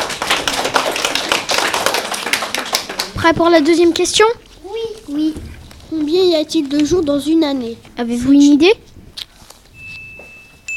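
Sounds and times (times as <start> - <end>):
many hands clapping: 0.0 - 4.1
speech: 3.2 - 4.4, 5.1 - 8.8.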